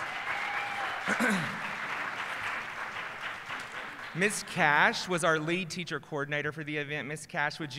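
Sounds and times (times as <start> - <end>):
crowd applauding: 0.0 - 5.4
speech: 1.1 - 1.6, 4.2 - 7.7.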